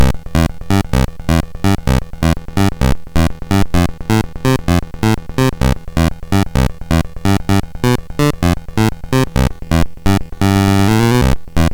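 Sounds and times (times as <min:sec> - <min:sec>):
bass: 0:00.0 - 0:11.7.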